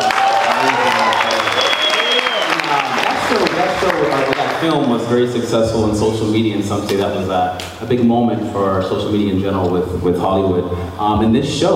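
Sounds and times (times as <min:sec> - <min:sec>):
faint voices and whoops: 0:00.0 - 0:03.2
audience applause: 0:00.0 - 0:05.4
speech: 0:04.6 - 0:11.7.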